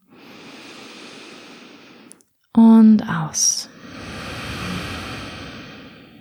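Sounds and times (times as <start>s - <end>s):
deep inhale during a guided breathing exercise: 0.0s - 2.2s, 3.7s - 6.1s
speech: 3.0s - 3.7s.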